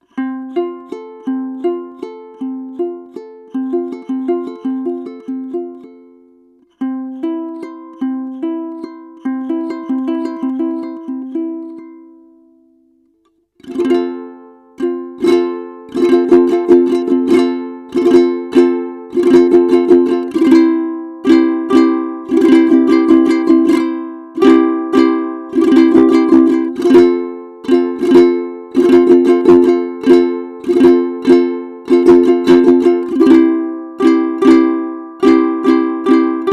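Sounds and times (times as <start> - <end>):
guitar G string: 0.0 - 36.5.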